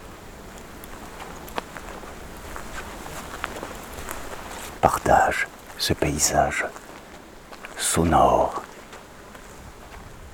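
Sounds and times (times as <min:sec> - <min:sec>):
mixed fir forest ambience: 0:00.0 - 0:10.3
quiet birds: 0:00.0 - 0:10.3
speech: 0:04.8 - 0:06.8, 0:07.8 - 0:08.7.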